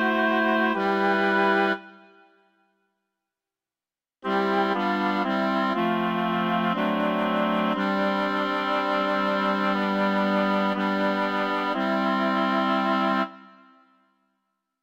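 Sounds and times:
wind quartet: 0.0 - 2.0, 4.2 - 13.8.

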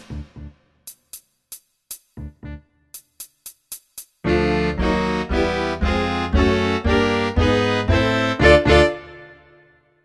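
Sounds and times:
saxophone quartet playing: 4.3 - 9.2.

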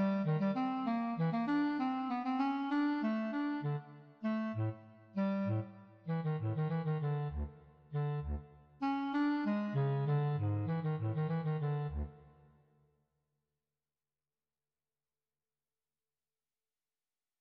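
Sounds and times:
bass clarinet playing presto: 0.0 - 12.4.

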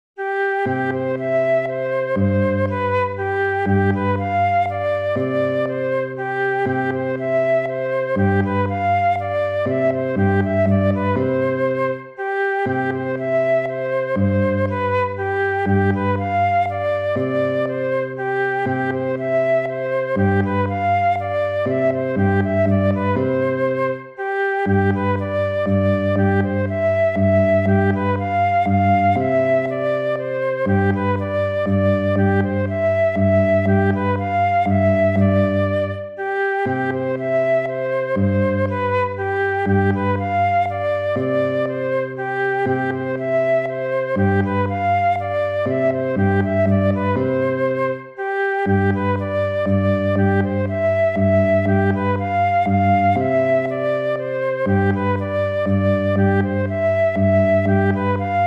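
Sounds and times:
waltz music: 0.2 - 58.4.

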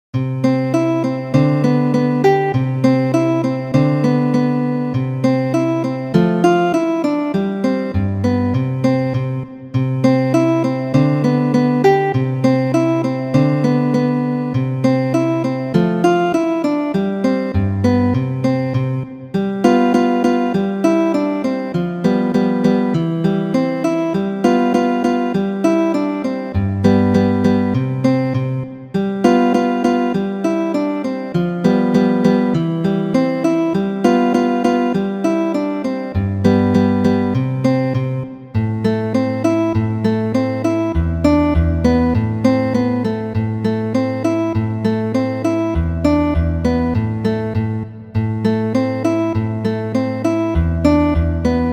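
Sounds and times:
music piece: 0.2 - 51.7.

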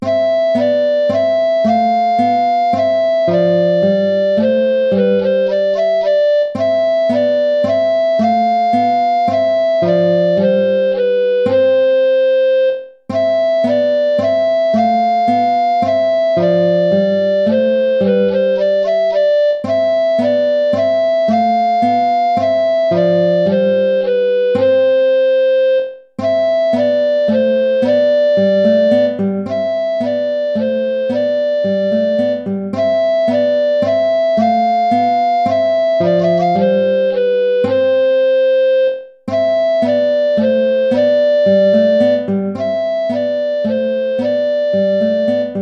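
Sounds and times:
minuet: 0.0 - 45.6.

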